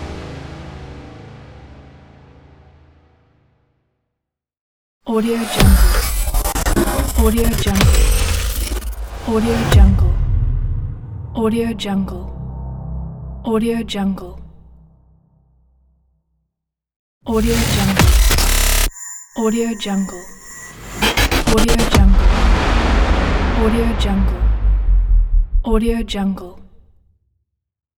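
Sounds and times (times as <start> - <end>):
cyber transform riser: 5.4 - 15.2, 17.4 - 26.2.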